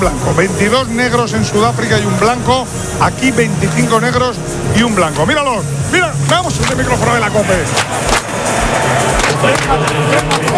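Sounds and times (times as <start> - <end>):
speech: 0.0 - 8.2, 9.4 - 10.5
rhythmic South African folk clapping: 6.2 - 10.5.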